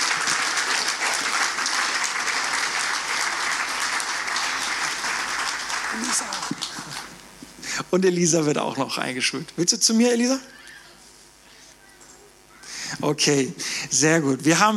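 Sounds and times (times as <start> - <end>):
applause: 0.0 - 7.2
speech: 6.0 - 6.4, 7.9 - 10.6, 13.1 - 14.7.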